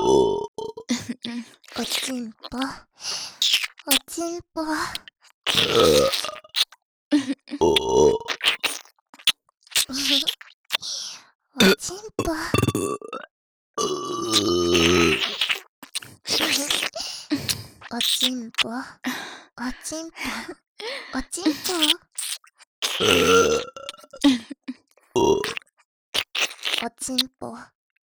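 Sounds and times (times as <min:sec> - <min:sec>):
burping: 0:00.0 - 0:00.9, 0:05.5 - 0:06.5, 0:07.6 - 0:08.8, 0:11.6 - 0:15.7, 0:22.8 - 0:24.2, 0:25.2 - 0:25.7
ear licking: 0:01.6 - 0:04.1, 0:04.9 - 0:06.8, 0:07.7 - 0:10.9, 0:14.3 - 0:18.6, 0:21.4 - 0:24.3, 0:25.3 - 0:25.6, 0:26.2 - 0:27.3.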